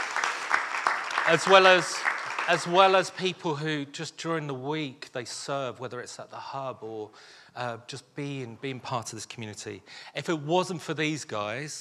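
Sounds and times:
audience applause: 0.0s - 3.3s
speech: 1.3s - 11.7s.

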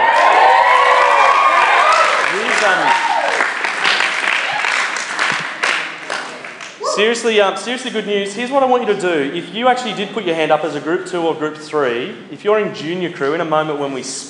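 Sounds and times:
audience cheering and applauding: 0.0s - 7.1s
speech: 7.0s - 14.2s.

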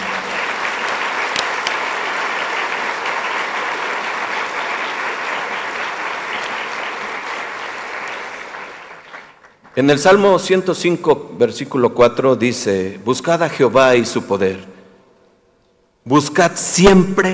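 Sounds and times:
audience applause: 0.0s - 9.9s
speech: 9.8s - 14.7s, 16.0s - 17.3s.

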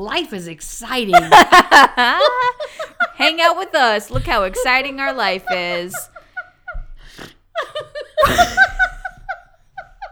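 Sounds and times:
speech: 0.0s - 6.1s
drunk woman giggling with snorting laughter: 1.1s - 3.2s, 5.5s - 10.1s.

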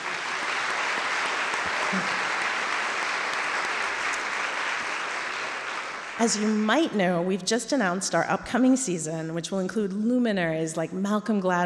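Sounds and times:
audience applause: 0.0s - 6.9s
speech: 1.9s - 2.2s, 6.2s - 11.6s.

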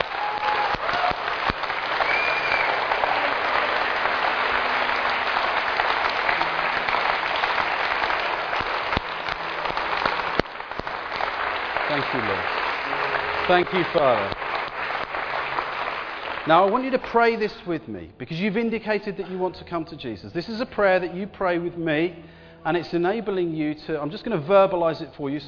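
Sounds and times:
church audience applause: 0.0s - 17.2s
speech: 13.5s - 14.4s, 16.5s - 25.4s.

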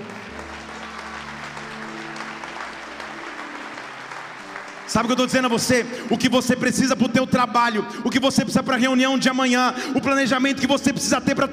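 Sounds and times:
audience applause: 0.0s - 6.6s
low sustained organ or keyboard drone: 0.0s - 8.0s
speech: 4.9s - 11.5s.

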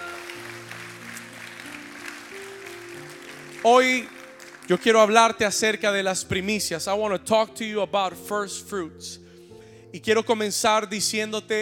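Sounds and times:
audience clapping: 0.0s - 5.6s
sustained keyboard chords: 0.0s - 11.6s
speech: 3.6s - 9.2s, 9.9s - 11.6s.

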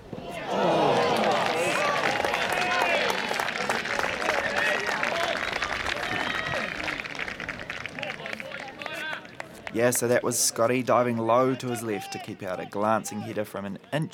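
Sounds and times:
stadium crowd oohs and ahs: 0.0s - 8.1s
speech: 9.8s - 14.1s.

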